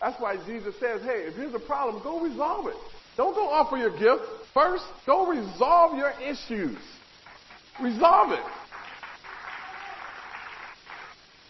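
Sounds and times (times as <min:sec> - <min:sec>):
speech: 0:00.0 - 0:07.0, 0:07.8 - 0:08.6
audience clapping: 0:07.2 - 0:11.4.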